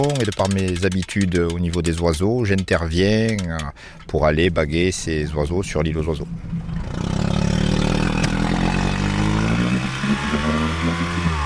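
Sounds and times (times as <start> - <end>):
speech: 0.0 - 6.7
motorboat engine running on a lagoon: 4.4 - 11.4.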